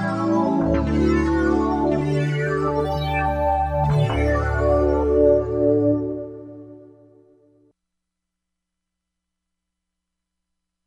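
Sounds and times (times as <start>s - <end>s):
Korg MSC-07S synthesizer combinations: 0.0s - 7.7s.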